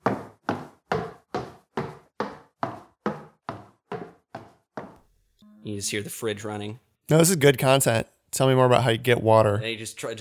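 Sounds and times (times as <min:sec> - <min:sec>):
footsteps trudging up the stairs: 0:00.0 - 0:05.0
speech: 0:05.6 - 0:10.2.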